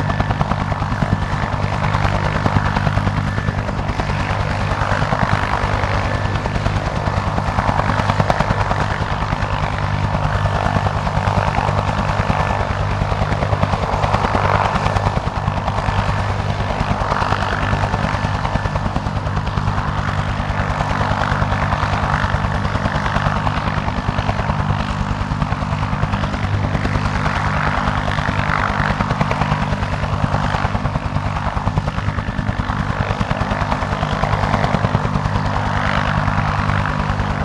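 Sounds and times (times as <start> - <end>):
1967 Bell UH-1 Iroquois helicopter hovering: 0.0 - 37.4.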